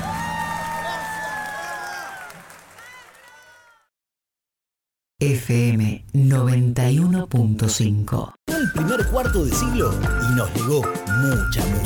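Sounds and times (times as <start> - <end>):
audience applause: 0.0 - 3.9
crowd cheering and shouting: 0.0 - 3.9
speech: 5.2 - 11.8.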